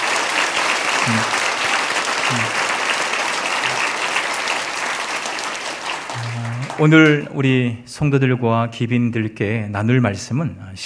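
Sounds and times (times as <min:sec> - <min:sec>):
audience applause: 0:00.0 - 0:07.5
speech: 0:01.1 - 0:01.4, 0:02.3 - 0:02.6, 0:06.8 - 0:10.8.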